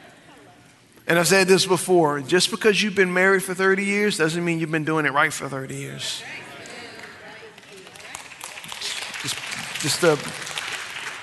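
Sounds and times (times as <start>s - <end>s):
speech: 1.1s - 6.4s, 9.8s - 10.5s
audience clapping: 6.5s - 11.2s.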